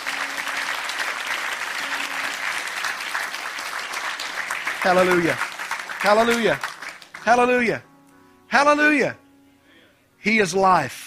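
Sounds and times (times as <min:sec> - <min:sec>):
church audience clapping hands: 0:00.0 - 0:07.6
speech: 0:04.8 - 0:07.9, 0:08.5 - 0:09.2, 0:10.2 - 0:11.0.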